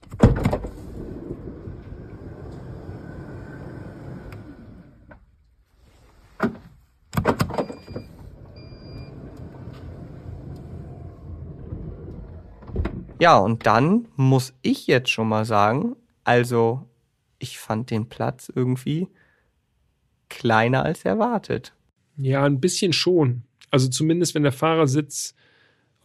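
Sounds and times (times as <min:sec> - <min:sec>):
electric sliding door of a van opening: 0:00.0 - 0:05.4, 0:07.4 - 0:13.1
speech: 0:13.2 - 0:19.2, 0:20.3 - 0:26.0.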